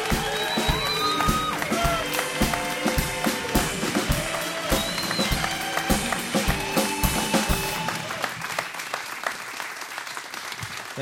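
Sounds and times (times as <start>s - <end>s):
upbeat rhythmic music with a steady beat: 0.0s - 8.2s
public radio show audience clapping and cheering: 0.0s - 11.0s.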